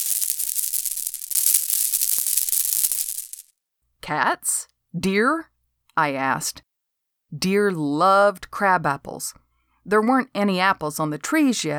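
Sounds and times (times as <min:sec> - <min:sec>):
BB pistol rattled with ammo inside: 0:00.0 - 0:03.5
speech: 0:04.0 - 0:06.7, 0:07.3 - 0:11.7.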